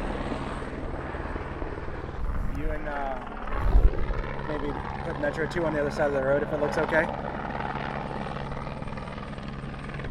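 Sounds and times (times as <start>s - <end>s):
helicopter rotors and engines roaring while landing: 0.0s - 10.0s
speech: 4.6s - 7.3s.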